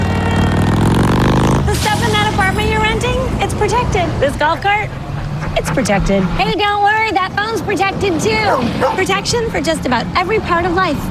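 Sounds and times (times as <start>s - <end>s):
motorcycle engine revving: 0.0s - 4.3s
speech: 3.6s - 5.0s, 5.6s - 11.0s.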